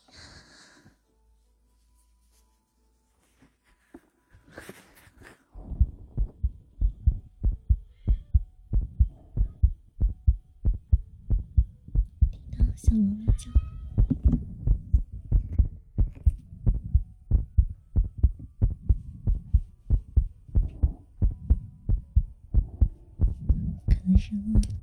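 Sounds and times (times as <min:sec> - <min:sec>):
human heartbeat: 0:05.6 - 0:24.8
speech: 0:12.9 - 0:13.7.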